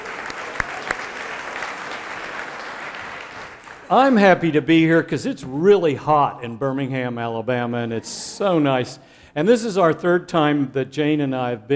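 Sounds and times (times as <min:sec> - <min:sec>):
audience clapping hands: 0:00.0 - 0:04.4
speech: 0:03.9 - 0:11.7.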